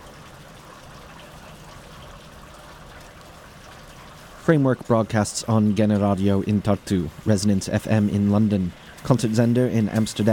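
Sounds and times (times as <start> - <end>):
summer rain in Southeast Estonia: 0.0 - 10.3
speech: 4.5 - 10.3.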